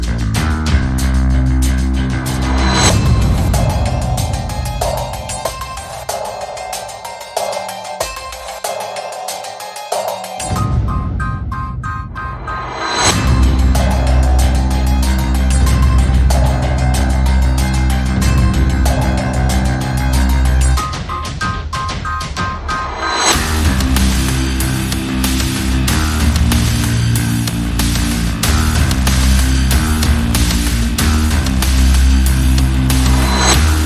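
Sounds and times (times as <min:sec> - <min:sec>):
bass: 0:00.0 - 0:05.3, 0:13.1 - 0:21.1, 0:23.3 - 0:33.8
percussion: 0:00.0 - 0:33.8.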